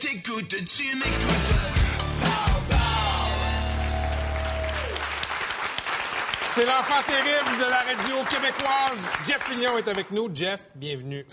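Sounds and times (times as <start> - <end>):
speech: 0.1 - 2.9, 6.6 - 11.3
audience clapping and cheering: 2.0 - 10.2.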